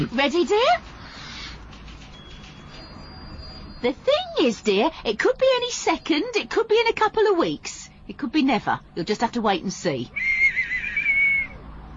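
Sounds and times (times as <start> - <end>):
speech: 0.0 - 0.9, 3.8 - 10.3
faint hum: 0.0 - 11.9
shrill whistle blast: 10.2 - 11.6.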